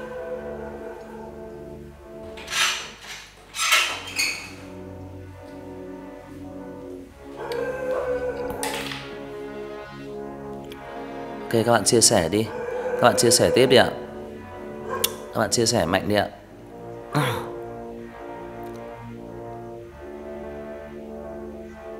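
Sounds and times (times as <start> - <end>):
steady humming musical tone: 0.0 - 3.2, 3.9 - 21.9
door being opened with thunking and rattling: 2.2 - 4.7
speech: 11.5 - 13.9, 15.4 - 16.4.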